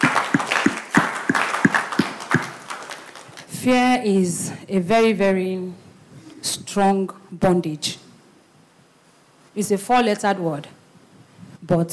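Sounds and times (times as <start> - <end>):
audience clapping: 0.0 - 3.5
speech: 3.6 - 5.8, 6.5 - 8.0, 9.6 - 10.8, 11.7 - 11.9.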